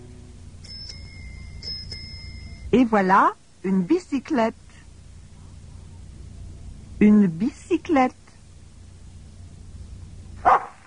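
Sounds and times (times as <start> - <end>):
quiet low hum: 0.0 - 10.8
speech: 2.7 - 4.6, 7.0 - 8.2
dog barking: 10.4 - 10.8.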